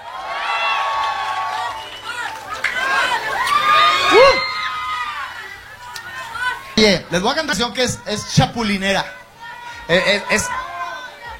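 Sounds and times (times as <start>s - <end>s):
audience applause: 0.0s - 6.4s
audience cheering: 0.0s - 6.8s, 7.6s - 11.3s
speech: 6.8s - 9.2s, 9.9s - 10.6s.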